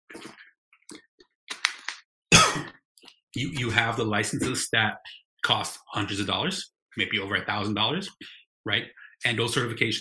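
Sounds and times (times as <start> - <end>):
person drinking water: 0.1 - 1.4
speech: 3.4 - 9.9.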